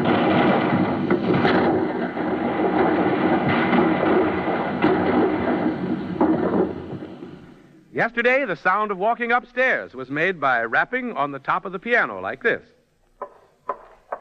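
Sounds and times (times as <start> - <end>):
recording of cannon fire played on a turntable: 0.0 - 7.8
speech: 8.0 - 12.8.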